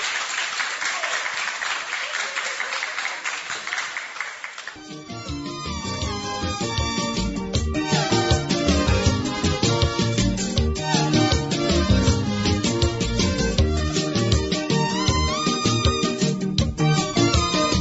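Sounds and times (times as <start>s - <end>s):
audience applauding: 0.0s - 5.0s
music: 4.8s - 17.8s.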